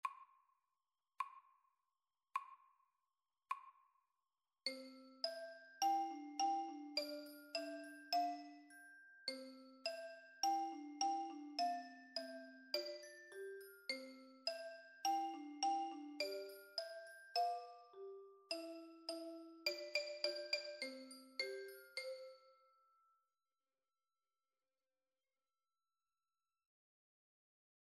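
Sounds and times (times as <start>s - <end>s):
xylophone: 4.7s - 23.1s.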